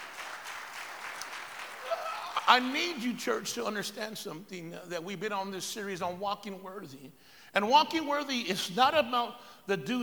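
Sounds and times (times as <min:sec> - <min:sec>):
audience clapping: 0:00.0 - 0:03.0
speech: 0:02.5 - 0:10.0.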